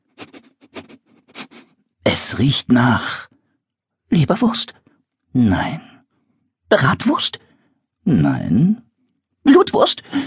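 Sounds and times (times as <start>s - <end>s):
voice imitating an animal sniffing: 0.0s - 1.8s
speech: 2.1s - 3.3s, 4.1s - 5.9s, 6.7s - 8.8s, 9.4s - 10.2s.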